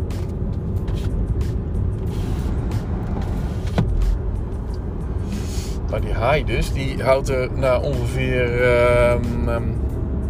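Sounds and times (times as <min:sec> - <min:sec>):
motor vehicle engines passing by: 0:00.0 - 0:10.2
speech: 0:05.9 - 0:09.8.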